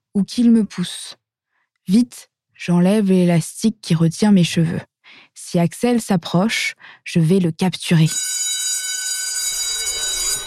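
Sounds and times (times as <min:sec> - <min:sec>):
speech: 0:00.2 - 0:01.2, 0:01.9 - 0:08.4
school bell ringing: 0:08.1 - 0:10.4.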